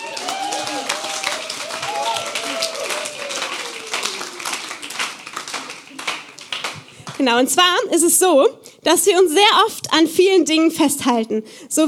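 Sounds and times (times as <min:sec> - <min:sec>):
audience applause: 0:00.0 - 0:07.2
speech: 0:07.2 - 0:11.8.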